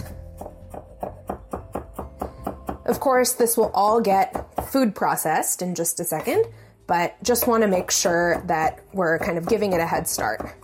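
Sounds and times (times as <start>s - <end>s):
knife finely chopping a garlic clove: 0.0s - 4.8s, 7.2s - 10.6s
speech: 2.9s - 10.6s.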